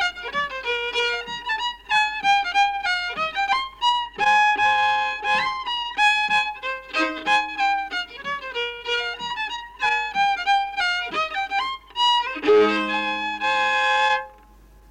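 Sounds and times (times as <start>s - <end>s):
folk violin tune: 0.0s - 14.8s.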